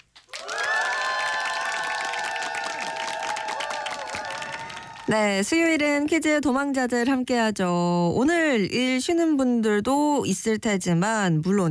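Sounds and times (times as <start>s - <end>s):
applause and cheering sound effect: 0.0s - 5.3s
speech: 5.1s - 11.6s.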